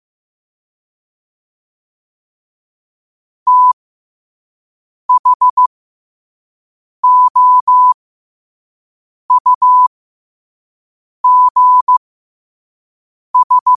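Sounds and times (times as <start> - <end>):
morse code at 5 wpm: 3.5 - 3.8, 5.1 - 5.7, 7.0 - 8.0, 9.3 - 9.9, 11.2 - 12.0, 13.4 - 13.7.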